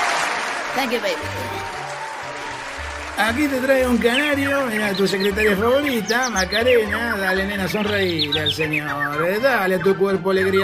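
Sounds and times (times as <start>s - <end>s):
crowd clapping and cheering: 0.0s - 5.6s
speech: 0.7s - 1.8s, 3.2s - 10.6s.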